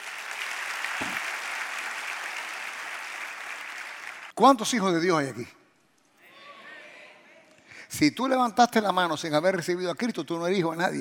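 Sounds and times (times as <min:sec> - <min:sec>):
audience applause: 0:00.0 - 0:04.3
speech: 0:04.4 - 0:05.6, 0:08.0 - 0:10.9.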